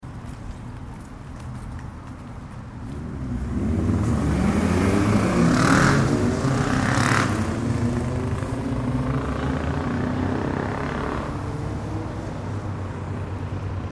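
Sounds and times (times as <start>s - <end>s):
motorcycle noise at a traffic light: 2.8s - 13.9s.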